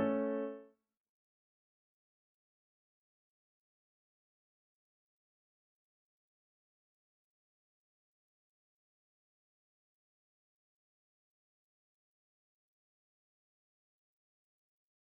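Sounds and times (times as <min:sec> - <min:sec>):
art song for voice and piano: 0:00.0 - 0:00.6.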